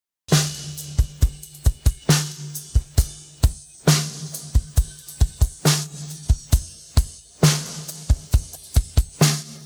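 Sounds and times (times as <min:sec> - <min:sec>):
drum pattern: 0:00.3 - 0:09.6.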